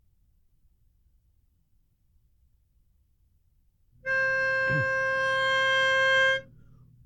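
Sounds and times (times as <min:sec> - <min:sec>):
lead melody: 0:04.0 - 0:06.4.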